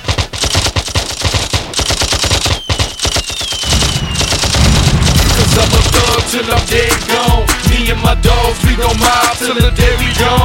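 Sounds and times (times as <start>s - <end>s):
automatic gunfire: 0.0s - 7.8s
faint whistling tone: 2.4s - 4.4s
speech: 6.3s - 10.4s.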